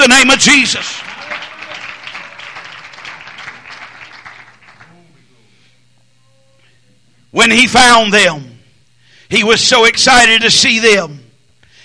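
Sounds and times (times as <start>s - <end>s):
speech: 0.0s - 1.1s, 7.3s - 8.5s, 9.3s - 11.2s
audience clapping hands: 0.0s - 5.2s.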